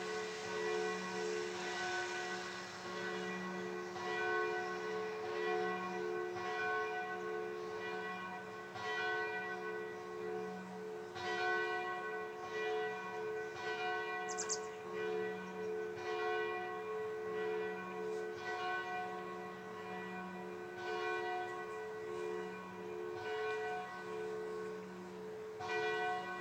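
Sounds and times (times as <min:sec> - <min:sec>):
bells ringing: 0:00.0 - 0:26.3.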